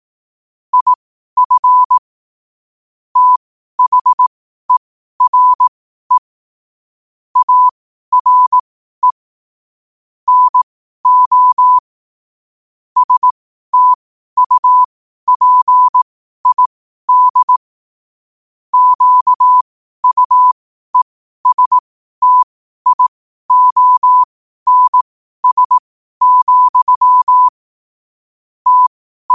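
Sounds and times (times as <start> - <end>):
morse code at 5 wpm: 0.7 - 2.0, 3.2 - 4.2, 5.2 - 6.2, 7.4 - 9.2, 10.3 - 11.8, 13.0 - 17.6, 18.8 - 27.6, 28.6 - 29.3.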